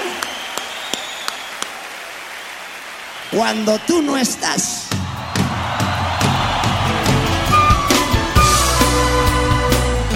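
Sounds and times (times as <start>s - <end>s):
sharp evenly spaced hand claps: 0.0s - 3.4s
audience applause: 0.0s - 9.2s
speech: 3.3s - 4.9s.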